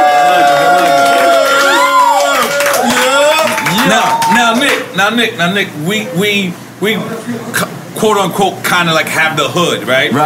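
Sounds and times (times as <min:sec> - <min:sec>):
live audience cheering and hollering: 0:00.0 - 0:04.9
scattered claps: 0:00.4 - 0:04.9
speech: 0:05.0 - 0:10.2.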